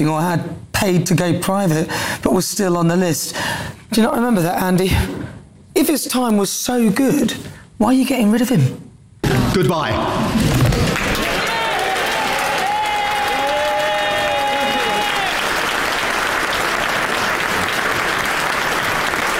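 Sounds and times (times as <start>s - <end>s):
speech: 0.0s - 8.8s, 9.5s - 10.4s
audience clapping and applause: 10.6s - 19.3s.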